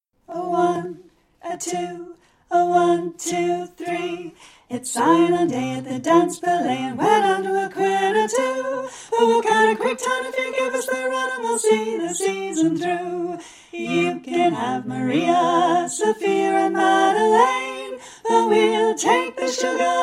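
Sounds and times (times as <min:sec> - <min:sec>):
folk choir singing all parts: 0:00.3 - 0:20.0.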